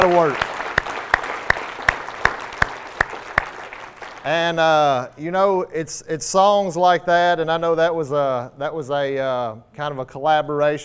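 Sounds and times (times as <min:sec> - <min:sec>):
speech: 0:00.0 - 0:00.5, 0:04.2 - 0:10.8
audience applause: 0:00.0 - 0:04.4
crowd noise: 0:00.0 - 0:04.4
rhythmic sharp claps: 0:00.0 - 0:04.6.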